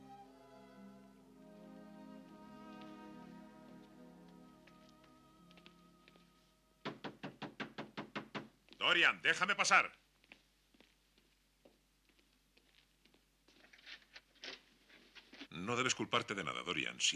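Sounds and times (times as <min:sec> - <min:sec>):
soft sustained tonal music: 0:00.0 - 0:07.0
firm knocks on a door: 0:06.8 - 0:08.6
speech: 0:08.8 - 0:10.0, 0:15.7 - 0:17.1.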